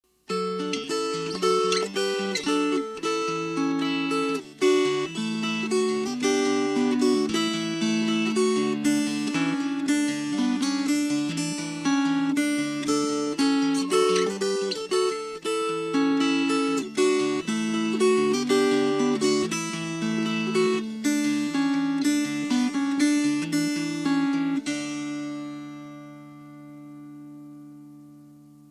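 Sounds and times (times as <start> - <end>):
fingerpicked strings: 0.3 - 28.6.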